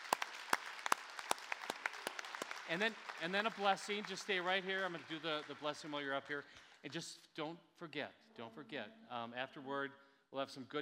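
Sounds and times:
audience applause: 0.0 - 5.9
speech: 2.7 - 10.7.

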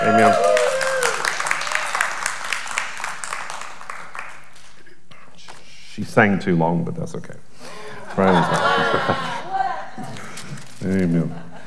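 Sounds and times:
audience applauding: 0.0 - 4.8
speech: 6.2 - 7.5, 8.2 - 9.3, 10.8 - 11.5
laughter: 7.8 - 10.4, 11.1 - 11.6.

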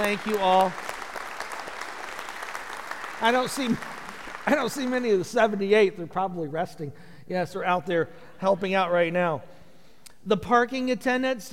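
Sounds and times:
speech: 0.0 - 0.8, 3.2 - 9.6, 10.2 - 11.5
audience applauding: 0.0 - 5.6.

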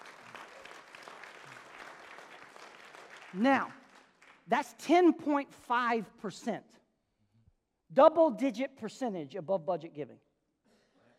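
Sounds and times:
audience applauding: 0.0 - 4.5
speech: 3.3 - 3.8, 4.5 - 6.8, 7.9 - 10.2.

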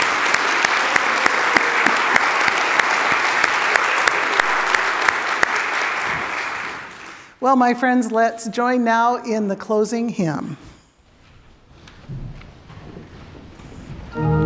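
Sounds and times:
audience applause: 0.0 - 7.3
speech: 7.4 - 10.7.

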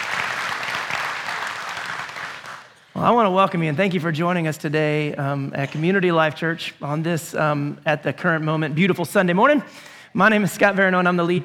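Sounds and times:
audience applause: 0.0 - 2.8
speech: 3.0 - 11.4.

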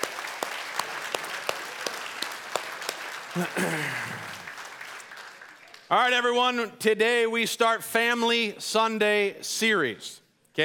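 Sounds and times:
audience applause: 0.0 - 5.9
speech: 3.4 - 4.3, 5.9 - 10.6.

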